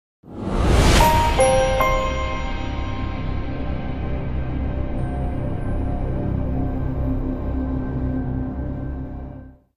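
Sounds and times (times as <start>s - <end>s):
audio logo jingle: 0.3s - 9.4s.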